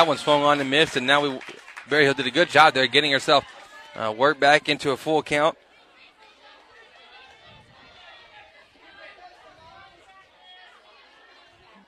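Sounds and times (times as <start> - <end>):
speech: 0.0 - 5.6
fans cheering: 0.0 - 11.8.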